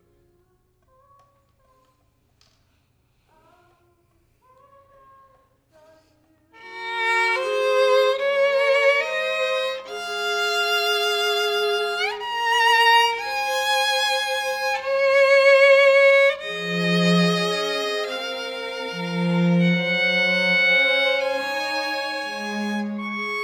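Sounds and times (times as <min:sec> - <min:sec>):
violin: 0:06.5 - 0:23.4.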